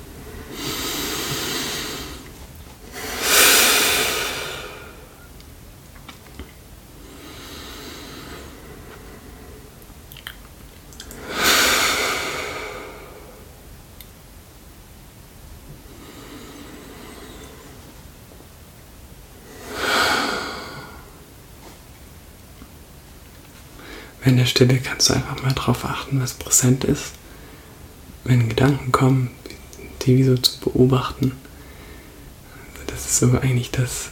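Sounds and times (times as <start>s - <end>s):
deep breaths: 0.0s - 5.3s, 7.0s - 9.8s, 11.1s - 13.6s, 15.8s - 18.0s, 19.4s - 21.2s, 23.8s - 24.2s, 27.2s - 27.9s, 31.4s - 32.8s
speech: 24.2s - 27.2s, 28.2s - 29.4s, 30.0s - 31.5s, 33.2s - 34.1s.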